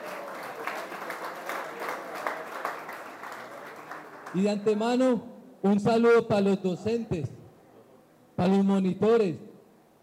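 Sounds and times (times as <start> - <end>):
audience applause: 0.0 - 4.4
speech: 4.3 - 7.4, 8.4 - 9.4.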